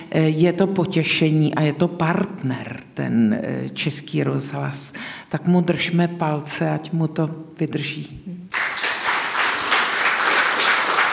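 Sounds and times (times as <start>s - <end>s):
speech: 0.2s - 8.3s
audience applauding: 8.5s - 11.1s.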